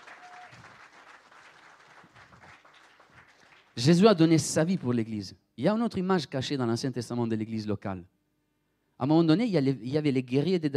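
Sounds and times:
church congregation applauding in praise during a sermon: 0.0s - 4.1s
speech: 3.8s - 8.2s, 9.0s - 10.7s.

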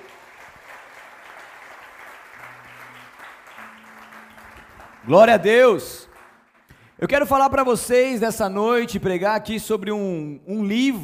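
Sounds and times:
audience applauding loudly: 0.0s - 7.5s
speech: 5.0s - 6.0s, 7.0s - 11.0s.

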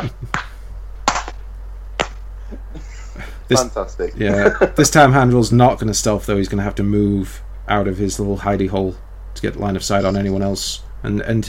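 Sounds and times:
laughter: 0.0s - 0.3s, 2.5s - 5.0s, 9.8s - 10.6s
hand clapping applause: 0.0s - 0.5s, 2.0s - 2.2s
speech: 3.5s - 11.4s.

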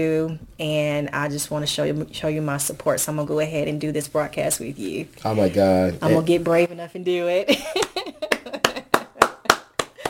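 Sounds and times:
speech: 0.0s - 8.4s
hands clapping: 7.7s - 10.0s.

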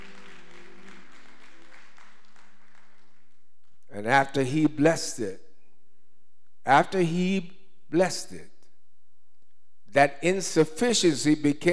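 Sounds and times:
audience hand clapping: 0.0s - 3.9s
speech: 4.0s - 5.4s, 6.6s - 8.5s, 9.9s - 11.7s.

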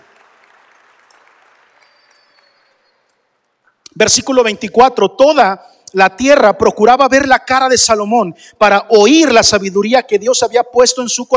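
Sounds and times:
audience applause: 0.0s - 3.2s
speech: 4.0s - 11.3s.

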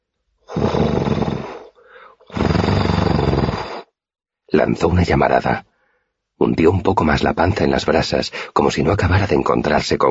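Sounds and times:
person voicing a dragon growling: 0.5s - 1.7s, 2.3s - 3.9s
speech: 4.6s - 5.7s, 6.4s - 10.0s.

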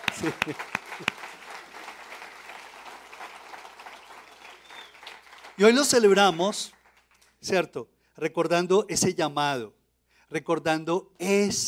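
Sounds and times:
audience applause: 0.0s - 7.3s
speech: 0.2s - 1.2s, 5.6s - 6.8s, 7.4s - 11.6s.

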